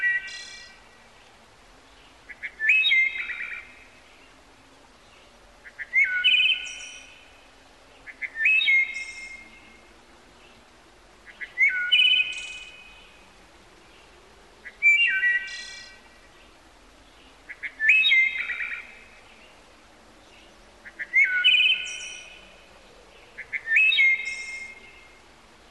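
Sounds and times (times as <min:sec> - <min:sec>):
quiet background hiss: 0:00.0 - 0:25.6
bird whistled song: 0:02.3 - 0:03.8, 0:05.7 - 0:07.2, 0:08.0 - 0:09.7, 0:11.3 - 0:13.1, 0:14.6 - 0:16.0, 0:17.5 - 0:19.1, 0:20.8 - 0:22.4, 0:23.4 - 0:25.2.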